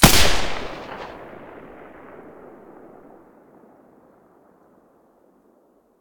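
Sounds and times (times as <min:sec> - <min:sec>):
G36 rifle with silencer shots: 0:00.0 - 0:03.2.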